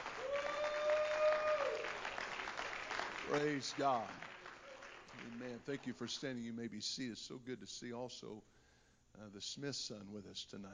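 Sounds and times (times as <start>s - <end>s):
audience clapping hands: 0.0s - 6.4s
speech: 3.3s - 4.3s, 5.2s - 10.7s.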